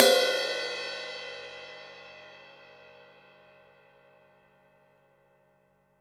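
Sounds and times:
deep house cymbal single hits: 0:00.0 - 0:03.4.

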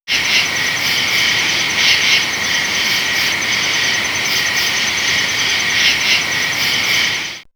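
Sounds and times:
nighttime nature ambience: 0:00.0 - 0:07.5.

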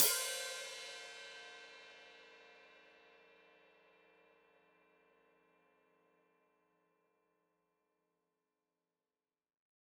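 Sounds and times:
open hi-hat played with foot: 0:00.0 - 0:01.2.

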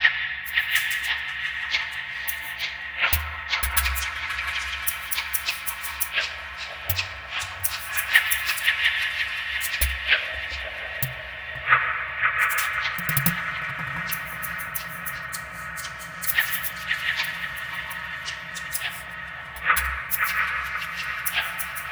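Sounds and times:
percussion: 0:00.5 - 0:21.9.

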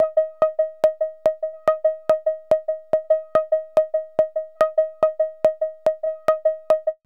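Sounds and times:
VCS synthesizer pulse: 0:00.0 - 0:07.0.

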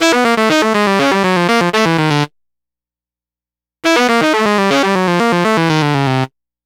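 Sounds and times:
saxophone line: 0:00.0 - 0:02.3, 0:03.8 - 0:06.3.

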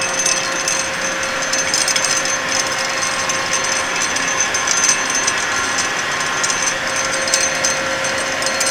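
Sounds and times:
industrial loose pipe sound: 0:00.0 - 0:08.6.

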